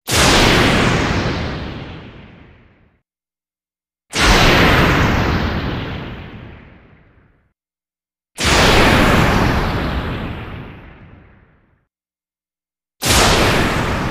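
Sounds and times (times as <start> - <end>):
explosions processed through vocoder for underwater effect: 0.1 - 2.9, 4.1 - 7.4, 8.4 - 11.7, 13.0 - 14.1.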